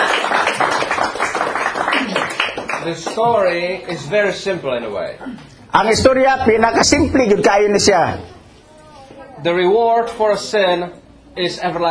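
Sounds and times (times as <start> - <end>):
church congregation clapping in praise of the Lord: 0.0 - 3.2
speech: 2.9 - 8.4, 9.4 - 11.9.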